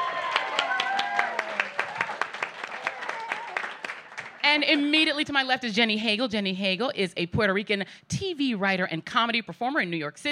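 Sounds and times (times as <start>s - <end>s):
audience applause: 0.0s - 4.9s
speech: 4.5s - 10.2s.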